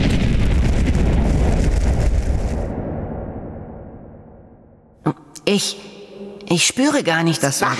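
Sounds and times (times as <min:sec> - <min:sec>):
fireball crashing down: 0:00.0 - 0:04.7
speech: 0:05.5 - 0:05.9, 0:06.5 - 0:07.7.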